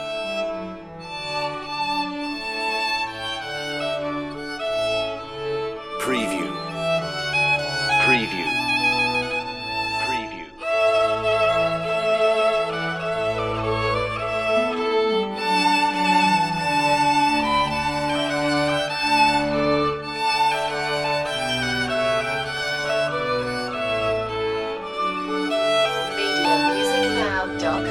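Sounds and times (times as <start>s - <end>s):
violin: 0.0s - 27.8s
trumpet tune: 6.0s - 6.8s, 8.0s - 8.6s.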